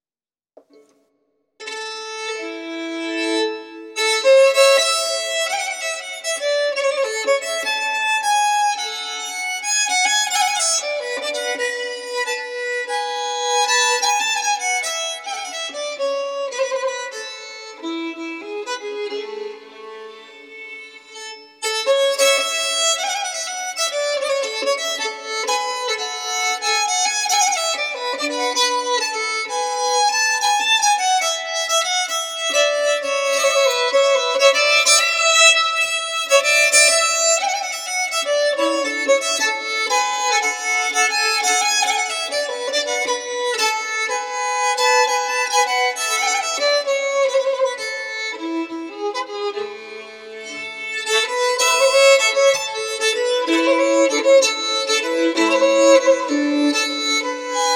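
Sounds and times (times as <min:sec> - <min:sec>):
bagpipe march: 0:01.6 - 0:57.7.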